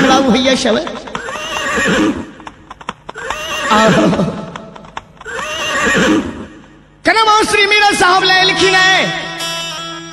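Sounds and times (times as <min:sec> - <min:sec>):
hoof clops: 0:00.0 - 0:06.6
speech: 0:00.3 - 0:01.0, 0:01.8 - 0:02.2, 0:03.7 - 0:04.4, 0:07.6 - 0:09.2
mare neighing: 0:01.1 - 0:06.7.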